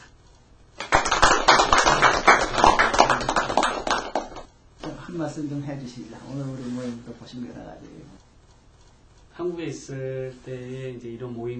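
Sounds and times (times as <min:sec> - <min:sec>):
audience applause: 0:00.8 - 0:04.5
speech: 0:05.2 - 0:08.2, 0:09.4 - 0:11.5.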